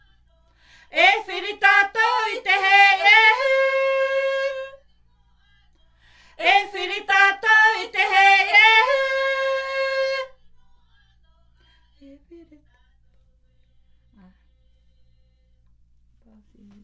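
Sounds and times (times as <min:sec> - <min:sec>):
himene tarava choral singing from Tahiti: 0:00.8 - 0:04.8, 0:06.2 - 0:10.5.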